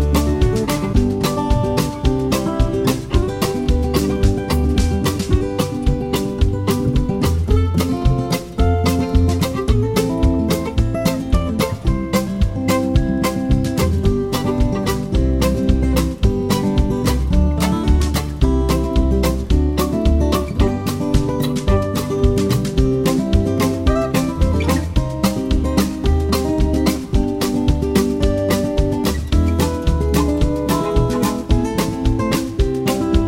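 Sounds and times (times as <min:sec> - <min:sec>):
fingerstyle guitar with train beat: 0:00.0 - 0:33.2.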